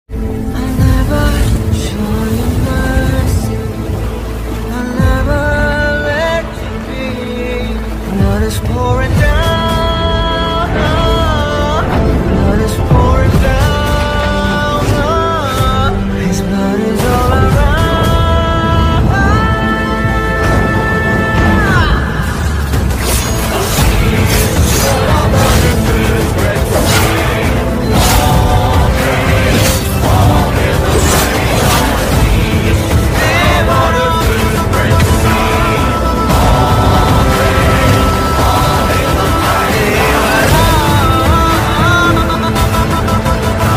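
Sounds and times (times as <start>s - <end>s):
background music ringtone: 0.0s - 43.7s.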